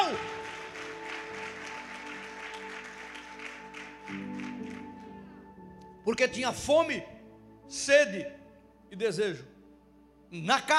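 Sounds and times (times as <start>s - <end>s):
applause: 0.0s - 5.4s
speech: 6.1s - 7.1s, 7.7s - 9.5s, 10.3s - 10.7s.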